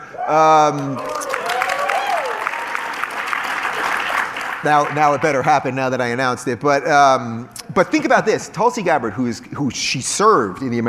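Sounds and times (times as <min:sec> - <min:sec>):
cheers and whoops: 0:00.0 - 0:03.4
speech: 0:00.3 - 0:01.1, 0:04.6 - 0:10.8
audience applause: 0:00.6 - 0:05.5.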